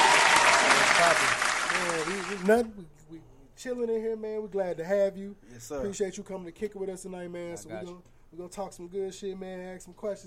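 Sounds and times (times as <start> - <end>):
audience applause: 0.0 - 2.6
speech: 1.9 - 10.2.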